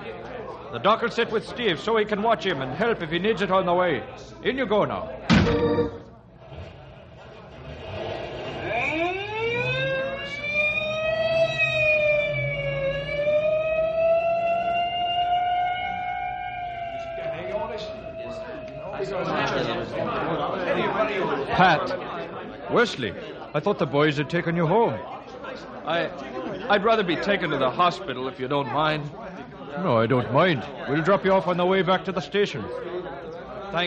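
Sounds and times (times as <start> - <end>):
speech: 0.7 - 5.7, 22.8 - 25.2, 25.9 - 29.2, 29.8 - 33.0
indistinct voices: 5.3 - 22.0
ambulance siren wailing: 5.5 - 6.2, 8.4 - 20.1.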